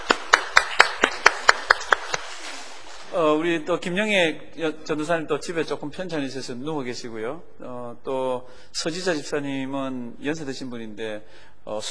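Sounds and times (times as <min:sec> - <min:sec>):
audience clapping in congratulation: 0:00.0 - 0:02.6
speech: 0:03.2 - 0:11.8.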